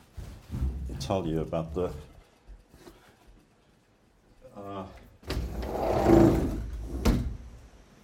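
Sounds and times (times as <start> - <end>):
speech: 1.1 - 2.1
window sliding open with a grinding rattle: 5.2 - 7.4.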